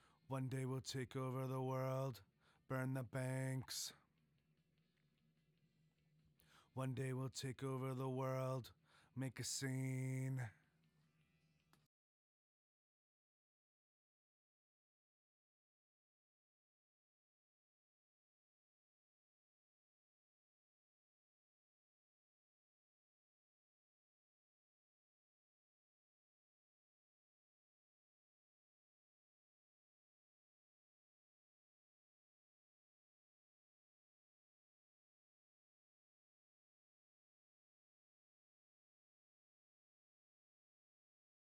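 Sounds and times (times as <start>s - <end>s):
low verse vocal: 0.3s - 3.9s, 6.8s - 10.5s.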